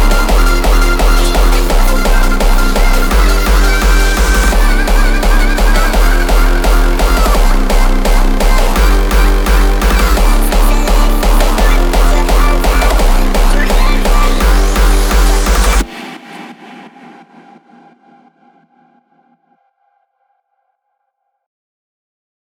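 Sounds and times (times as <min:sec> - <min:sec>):
low bass tone at 31 to 35 Hz: 0:00.0 - 0:15.9.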